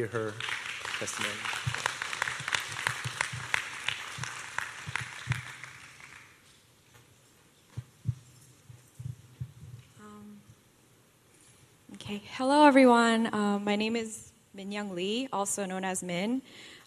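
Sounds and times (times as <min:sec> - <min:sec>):
speech: 0:00.0 - 0:01.8, 0:12.2 - 0:16.7
room full of people applauding: 0:00.0 - 0:06.4.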